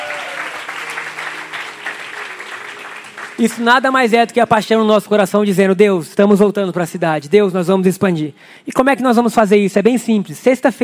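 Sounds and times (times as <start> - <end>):
audience applauding: 0.0 - 4.0
speech: 3.4 - 10.8.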